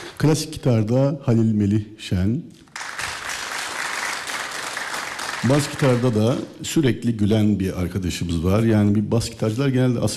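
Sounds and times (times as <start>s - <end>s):
speech: 0.2s - 2.6s, 5.4s - 10.1s
audience applause at a live concert: 2.8s - 6.5s.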